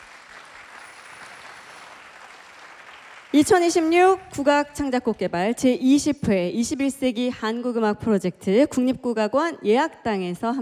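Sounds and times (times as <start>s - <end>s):
audience applause: 0.0s - 3.4s
speech: 3.4s - 10.6s.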